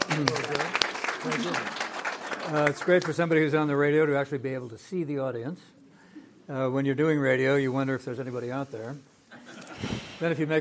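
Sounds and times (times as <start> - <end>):
audience applause: 0.0 - 3.2
speech: 0.2 - 0.5, 2.5 - 5.8, 6.5 - 9.1, 9.8 - 10.6.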